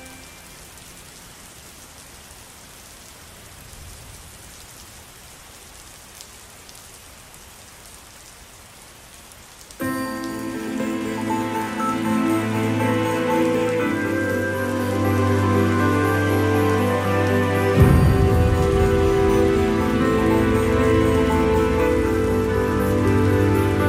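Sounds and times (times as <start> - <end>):
relaxing music: 0.0 - 1.8, 9.8 - 23.8.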